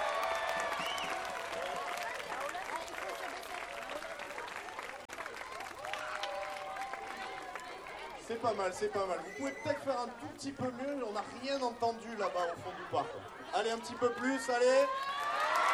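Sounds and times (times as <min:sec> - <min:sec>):
loud applause: 0:00.0 - 0:09.9, 0:13.8 - 0:15.7
laughter: 0:06.5 - 0:15.7
speech: 0:08.3 - 0:15.5.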